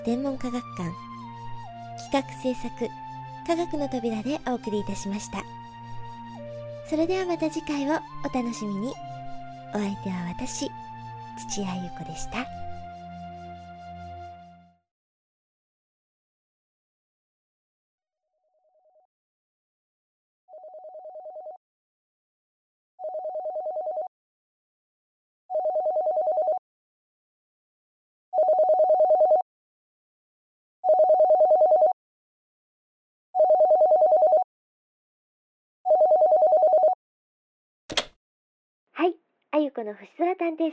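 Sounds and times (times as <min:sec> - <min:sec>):
speech: 0:00.0 - 0:01.1, 0:02.1 - 0:05.6, 0:06.9 - 0:09.0, 0:09.7 - 0:10.8, 0:11.4 - 0:12.6, 0:39.8 - 0:40.7
telephone ringing: 0:23.0 - 0:24.1, 0:25.5 - 0:26.6, 0:28.4 - 0:29.4, 0:30.8 - 0:32.0, 0:33.4 - 0:34.4, 0:35.9 - 0:37.0.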